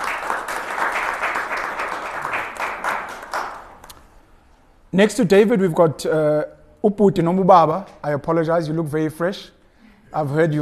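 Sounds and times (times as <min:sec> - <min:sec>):
audience applause for a speaker at a public policy panel: 0:00.0 - 0:03.9
speech: 0:04.9 - 0:10.6.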